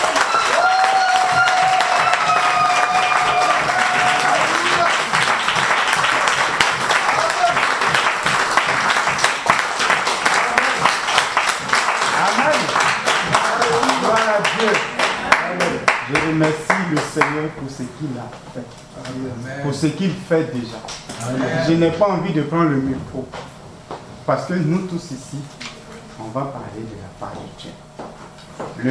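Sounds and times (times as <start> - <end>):
church congregation applauding loudly during worship: 0.0 - 17.6
speech: 17.6 - 23.4, 24.3 - 25.6, 26.3 - 27.9.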